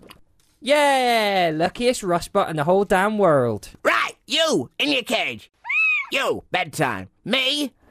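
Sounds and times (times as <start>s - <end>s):
speech: 0.7s - 5.5s, 6.1s - 7.8s
parrot squawking: 5.6s - 6.1s.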